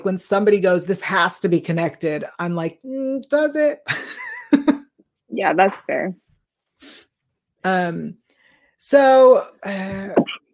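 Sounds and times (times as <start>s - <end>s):
speech: 0.0s - 4.6s, 5.3s - 6.2s, 7.6s - 8.2s, 8.8s - 10.3s
quick sharp inhale: 8.3s - 8.8s.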